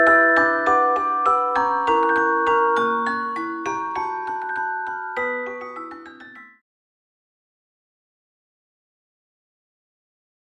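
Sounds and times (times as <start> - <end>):
celesta melody: 0.0 - 6.6.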